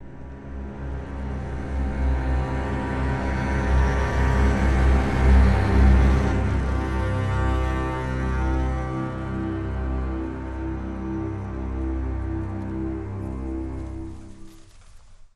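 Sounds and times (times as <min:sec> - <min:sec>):
string swell sting: 0:00.0 - 0:14.9.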